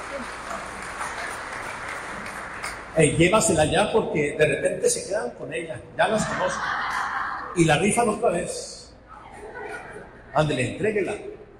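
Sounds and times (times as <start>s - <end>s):
crowd applause: 0.0s - 3.4s
speech: 3.0s - 6.8s, 7.6s - 8.8s, 10.3s - 11.3s
laughter: 6.0s - 7.8s, 9.1s - 10.8s.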